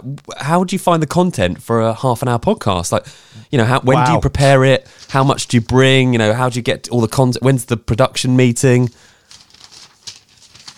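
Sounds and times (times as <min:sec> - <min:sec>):
speech: 0:00.0 - 0:09.1
paper rustling: 0:04.4 - 0:06.1, 0:08.8 - 0:10.7.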